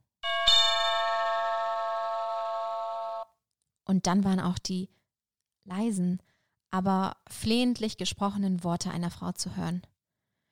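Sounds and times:
doorbell ringing: 0.2s - 3.2s
speech: 3.9s - 5.0s, 5.6s - 9.9s.

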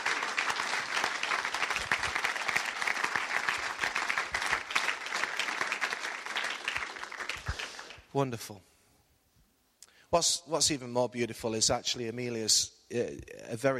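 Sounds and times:
crowd applauding: 0.0s - 8.1s
speech: 8.2s - 8.7s, 10.1s - 13.7s.

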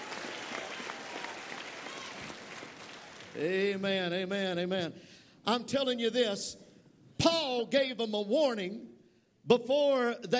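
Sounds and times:
audience clapping: 0.0s - 3.8s
speech: 3.4s - 6.6s, 7.2s - 10.3s.

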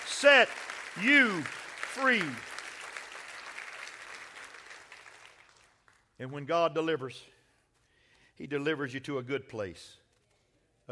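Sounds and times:
audience clapping hands: 0.0s - 6.2s
speech: 0.2s - 2.5s, 6.2s - 7.3s, 8.4s - 10.0s.

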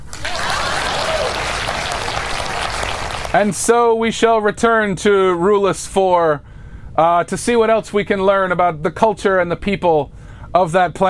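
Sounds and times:
audience applause: 0.0s - 3.4s
speech: 3.3s - 11.0s.

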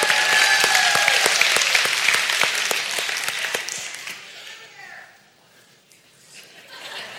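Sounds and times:
audience applause: 0.0s - 4.3s
laughter: 6.3s - 7.1s.

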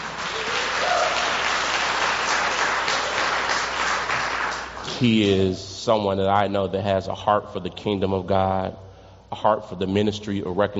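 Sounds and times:
audience applause: 0.0s - 5.2s
speech: 5.0s - 10.7s.

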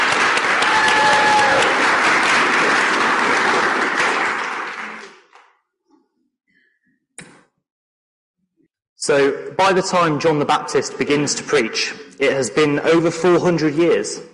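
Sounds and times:
crowd applauding: 0.0s - 5.4s
speech: 9.0s - 14.3s.

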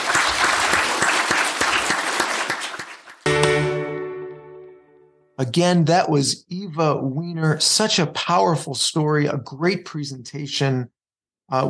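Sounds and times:
audience applause: 0.0s - 3.8s
speech: 5.4s - 11.6s.

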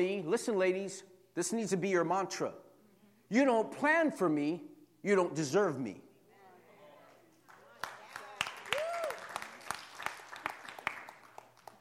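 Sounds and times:
speech: 0.0s - 2.6s, 3.3s - 6.0s
audience clapping: 7.4s - 11.7s.

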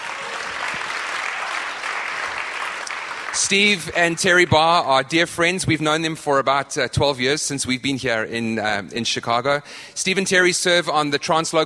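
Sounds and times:
church congregation in Chicago applauding a guest speaker: 0.0s - 4.8s
speech: 3.4s - 11.6s.

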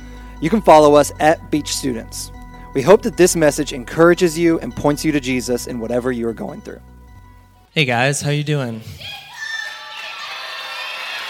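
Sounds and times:
speech: 0.4s - 6.9s, 7.7s - 9.2s
audience cheering and shouting: 9.0s - 11.2s.

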